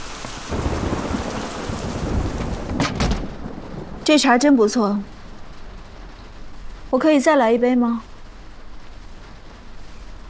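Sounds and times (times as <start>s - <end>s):
heavy rain: 0.0s - 10.2s
low thunder rumbling: 0.1s - 10.2s
speech: 4.1s - 5.1s, 6.9s - 8.1s.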